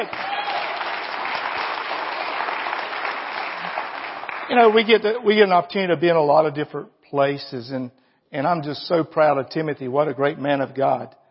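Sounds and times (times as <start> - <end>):
speech: 0.0 - 0.3, 4.5 - 11.2
audience clapping loudly: 0.0 - 5.2.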